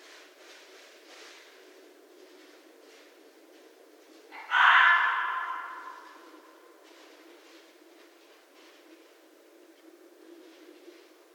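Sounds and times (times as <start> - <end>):
red fox screaming: 4.3 - 6.3.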